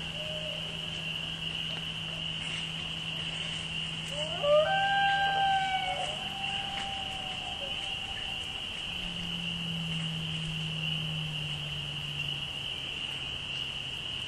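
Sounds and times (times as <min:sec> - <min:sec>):
spring peepers chorus: 0:00.0 - 0:14.2.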